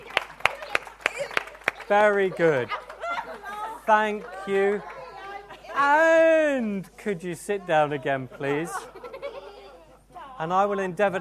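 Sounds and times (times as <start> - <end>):
audience applause: 0.0 - 5.1
laughter: 0.6 - 5.9, 7.7 - 10.4
speech: 1.9 - 2.8, 3.9 - 4.9, 5.8 - 8.9, 10.4 - 11.1.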